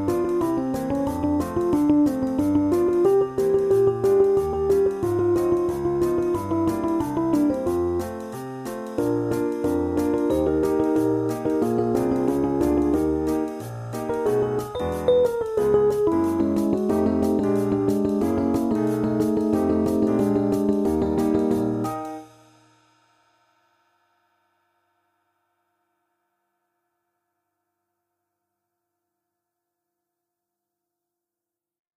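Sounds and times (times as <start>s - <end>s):
MIDI piano: 0.0s - 22.8s.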